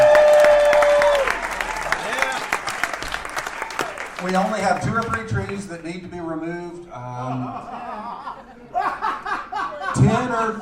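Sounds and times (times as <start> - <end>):
room full of people applauding: 0.0 - 5.7
speech: 4.3 - 8.0, 10.0 - 10.6
laughter: 7.0 - 10.6.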